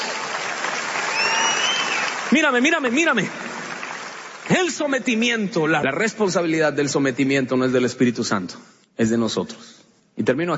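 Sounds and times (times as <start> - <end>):
church congregation applause: 0.0 - 5.4
speech: 2.3 - 3.4, 4.5 - 10.5.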